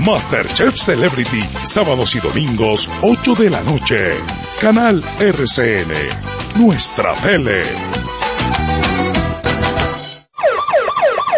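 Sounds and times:
speech: 0.0s - 9.0s
ambulance siren: 10.3s - 11.3s.

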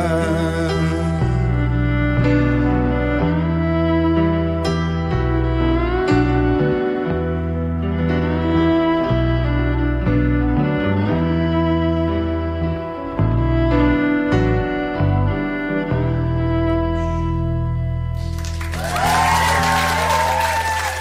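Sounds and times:
live rock song: 0.0s - 18.7s
concert audience applause: 18.2s - 20.9s
concert audience cheers and whistles: 18.6s - 20.9s.

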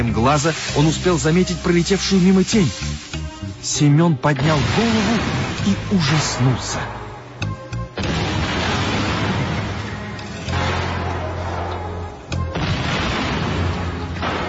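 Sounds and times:
speech: 0.2s - 3.0s, 3.6s - 7.0s
gas pipe bursting explosion: 4.4s - 7.0s, 8.0s - 11.7s, 12.5s - 14.4s.

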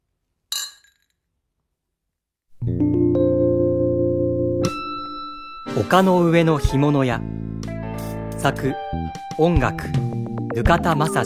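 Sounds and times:
glasses clinking in a toast: 0.5s - 1.0s
speech: 2.6s - 3.0s, 5.8s - 7.5s, 8.4s - 11.2s
steady sustained harmonic tone: 2.8s - 7.6s
chiming accent: 4.7s - 11.2s.

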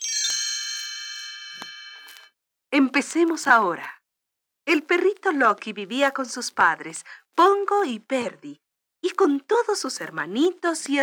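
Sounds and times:
tinkling little bells page-turn chime: 0.0s - 2.3s
speech: 2.7s - 4.0s, 4.7s - 11.0s.

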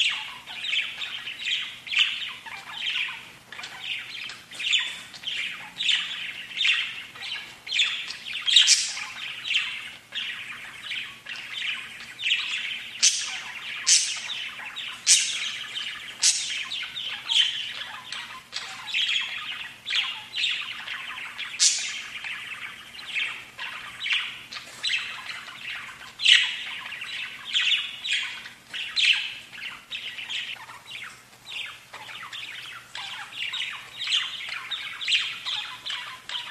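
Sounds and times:
budgerigar chatter: 0.0s - 36.4s.

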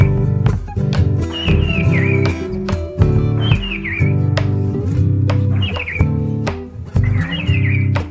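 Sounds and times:
striped cuckoo (crespín) whistled song: 0.0s - 0.3s, 1.2s - 4.3s, 5.5s - 6.2s, 7.0s - 8.0s
loud instrumental music with strong percussive beats: 0.0s - 8.0s.

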